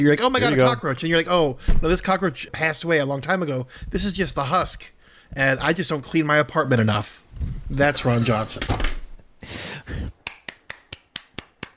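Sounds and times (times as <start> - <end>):
speech: 0.0 - 10.2
golf claps: 10.2 - 11.7.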